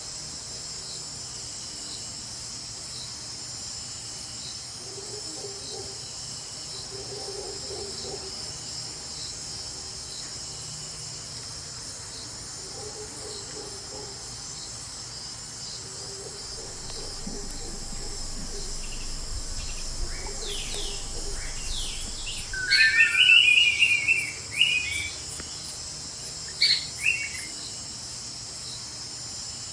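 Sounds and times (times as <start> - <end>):
Meso American forest soundscape: 16.4 - 25.8.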